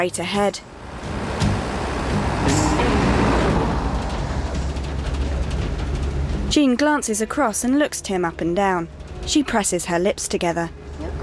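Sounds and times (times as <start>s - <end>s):
speech: 0.0s - 1.0s, 6.5s - 10.8s
passing vehicles: 0.0s - 11.2s
truck driving through city traffic: 0.0s - 11.2s.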